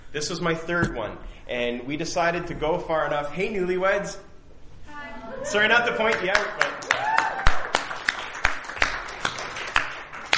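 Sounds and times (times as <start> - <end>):
speech: 0.1 - 4.3, 5.4 - 6.7
scattered handclaps from a small audience applauding newlyweds: 6.1 - 10.3.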